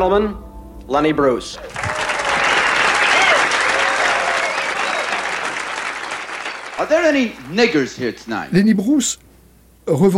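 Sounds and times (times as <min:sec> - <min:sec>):
speech: 0:00.0 - 0:02.0, 0:06.8 - 0:10.1
large audience clapping: 0:01.6 - 0:08.2.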